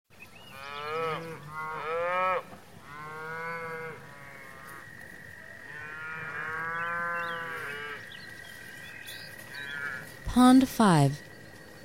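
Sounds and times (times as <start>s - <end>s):
cows mooing: 0.5s - 4.8s, 5.6s - 8.1s, 9.6s - 10.1s
speech: 10.4s - 11.3s.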